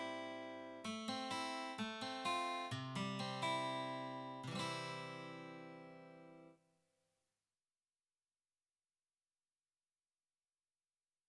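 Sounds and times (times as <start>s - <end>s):
guitar: 0.0s - 6.6s.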